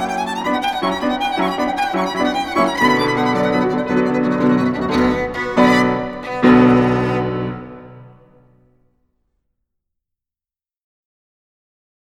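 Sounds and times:
violin: 0.0s - 8.4s
piano: 0.0s - 8.8s.

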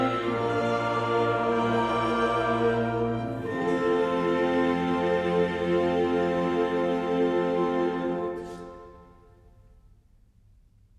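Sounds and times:
choir singing: 0.0s - 9.2s
brass ensemble playing: 0.0s - 9.3s.

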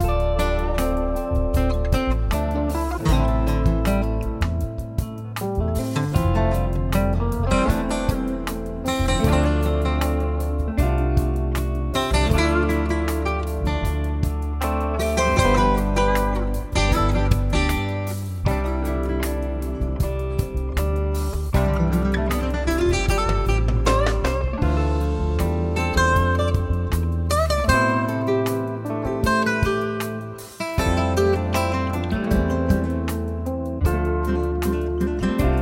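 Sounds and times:
music for studying and focus: 0.0s - 35.6s.

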